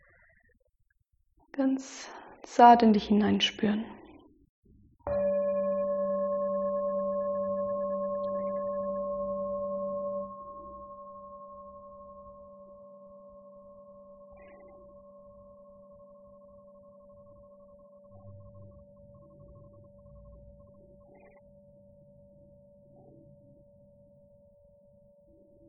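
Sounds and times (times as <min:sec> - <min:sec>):
speech: 0:01.6 - 0:04.0
meditation bell ringing: 0:05.1 - 0:19.0.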